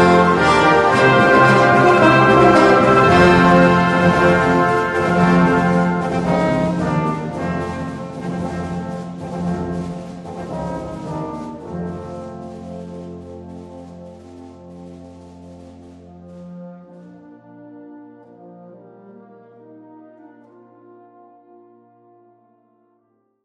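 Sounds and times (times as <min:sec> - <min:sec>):
fanfare: 0:00.0 - 0:14.7
theme music: 0:00.0 - 0:21.7.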